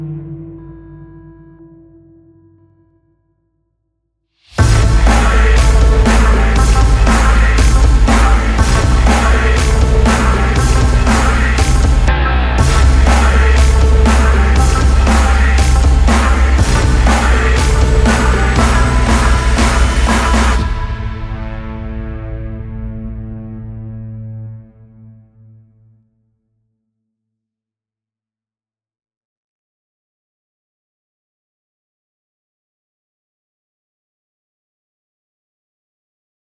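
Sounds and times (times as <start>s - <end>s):
electronic music: 4.6s - 24.6s.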